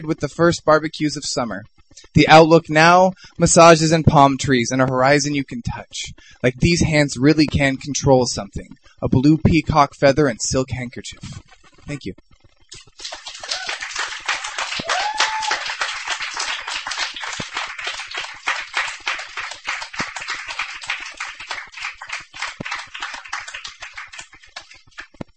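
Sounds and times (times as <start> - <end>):
speech: 0.0 - 12.3
audience applauding a poet at a poetry reading: 12.8 - 25.2.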